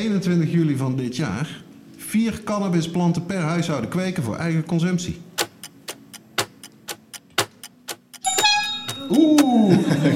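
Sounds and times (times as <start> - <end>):
speech: 0.0 - 5.3
bell ringing: 8.2 - 10.1
laughter: 9.5 - 10.1.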